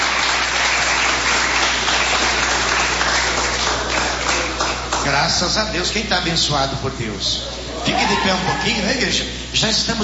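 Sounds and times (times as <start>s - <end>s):
audience clapping hands: 0.0s - 5.4s
speech: 5.1s - 10.0s.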